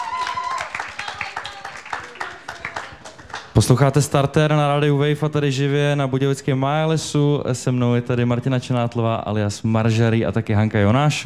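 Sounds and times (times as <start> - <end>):
audience clapping: 0.0 - 3.9
speech: 3.6 - 11.2.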